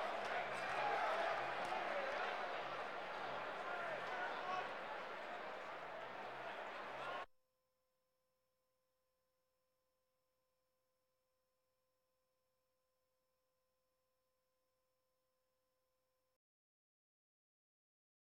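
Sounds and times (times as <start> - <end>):
sports crowd: 0.0 - 7.3.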